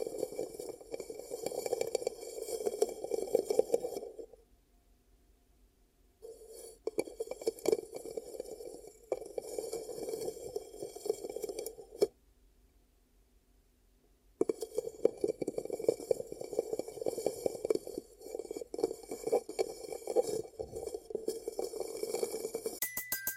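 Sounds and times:
ear cupping rubbing sounds: 0.0 - 4.3, 6.3 - 12.1, 14.4 - 22.8.

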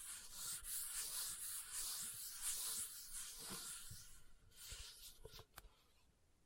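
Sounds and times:
leather scratching: 0.0 - 5.2.

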